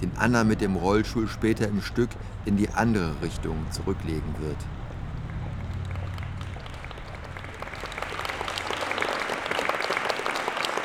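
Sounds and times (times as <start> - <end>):
speech: 0.1 - 4.8
theatre audience applause: 4.7 - 10.8.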